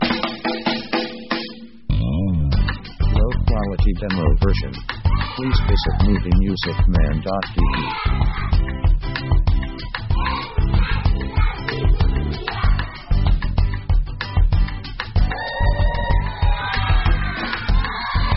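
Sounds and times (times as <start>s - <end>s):
african sunrise music: 0.0s - 18.3s.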